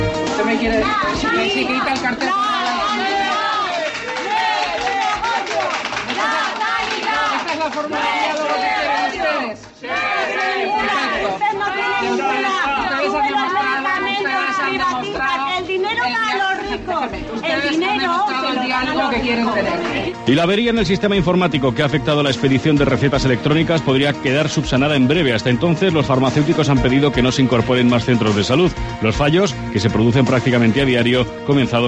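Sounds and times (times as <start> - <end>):
speech: 0.4 - 3.1, 7.7 - 31.8
protesters shouting and jeering: 2.3 - 14.7.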